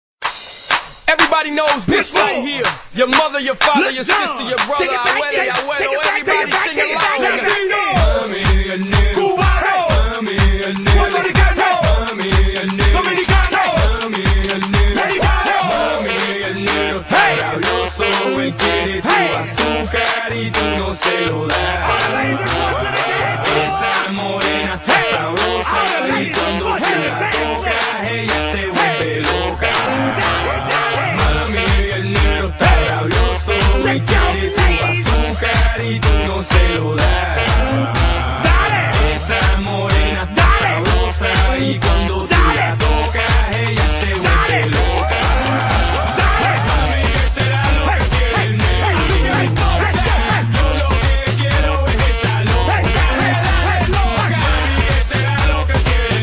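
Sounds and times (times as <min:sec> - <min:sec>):
techno music: 0:00.2 - 0:56.2.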